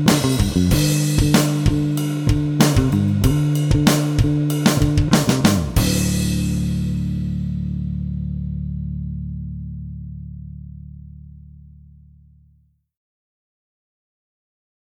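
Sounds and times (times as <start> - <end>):
drop D backing track: 0.0 - 9.7.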